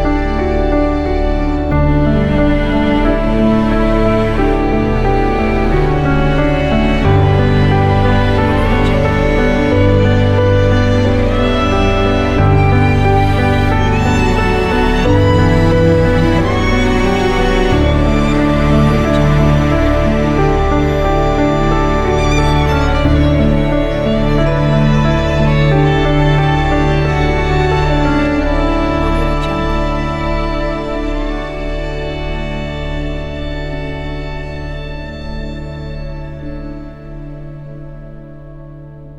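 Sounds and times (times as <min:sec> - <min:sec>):
cinematic beauty music: 0:00.0 - 0:39.1.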